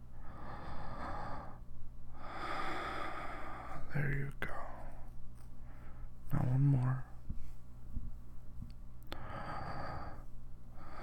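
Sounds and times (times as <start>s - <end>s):
person breathing deeply: 0.1s - 3.9s, 9.1s - 11.0s
speech: 3.9s - 4.8s, 6.4s - 7.1s.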